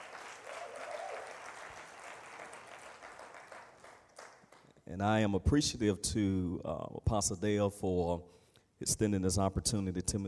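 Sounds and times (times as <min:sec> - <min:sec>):
audience clapping hands: 0:00.0 - 0:04.8
speech: 0:04.9 - 0:10.2.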